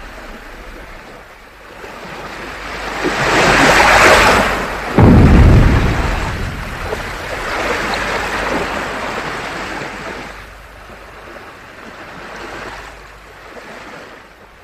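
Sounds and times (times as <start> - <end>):
rough sea water churning after a prince is thrown into the sea: 0.0 - 14.6.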